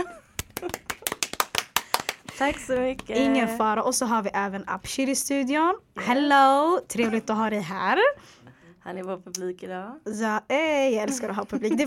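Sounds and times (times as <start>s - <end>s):
person laughing: 0.0s - 0.9s
small group applause: 0.3s - 3.3s
speech: 2.4s - 11.8s.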